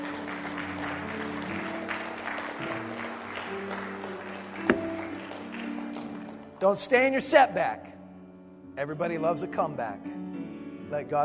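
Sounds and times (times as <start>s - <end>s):
audience clapping: 0.0s - 6.6s
speech: 6.6s - 7.9s, 8.8s - 10.2s, 10.9s - 11.2s.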